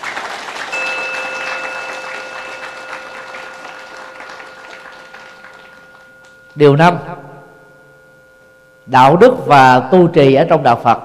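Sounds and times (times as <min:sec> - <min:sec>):
loud round of applause: 0:00.0 - 0:06.5
speech: 0:06.6 - 0:07.2, 0:08.9 - 0:11.0.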